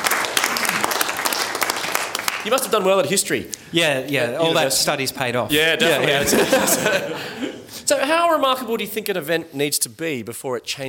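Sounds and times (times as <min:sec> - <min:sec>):
audience applause: 0:00.0 - 0:03.0
speech: 0:02.4 - 0:10.8
laughter: 0:05.5 - 0:07.9.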